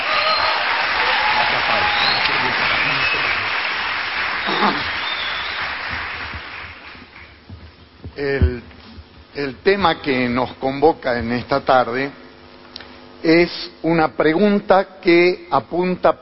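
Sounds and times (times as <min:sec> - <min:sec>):
audience applause: 0:00.0 - 0:07.4
speech: 0:09.4 - 0:12.2, 0:13.2 - 0:16.2.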